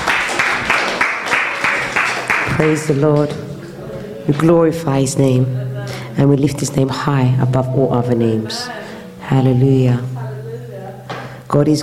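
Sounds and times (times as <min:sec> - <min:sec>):
crowd clapping in rhythm: 0:00.0 - 0:04.5
speech: 0:02.6 - 0:03.5, 0:04.2 - 0:05.6, 0:06.2 - 0:10.1, 0:11.5 - 0:11.8.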